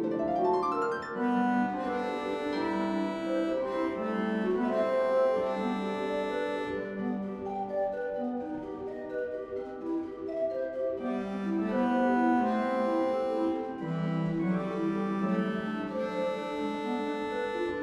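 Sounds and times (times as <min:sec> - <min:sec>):
OrganTeq organ study piece: 0:00.0 - 0:17.8.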